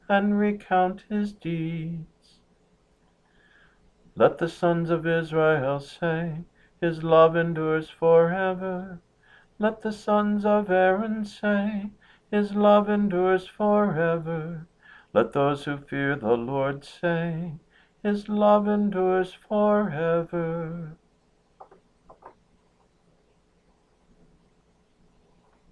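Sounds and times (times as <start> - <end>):
psalm tone six chant: 0.0 - 2.4, 4.2 - 9.0, 9.6 - 21.0.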